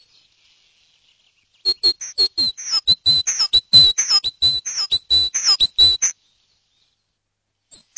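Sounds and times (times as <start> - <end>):
great tit churring: 1.7 - 6.1.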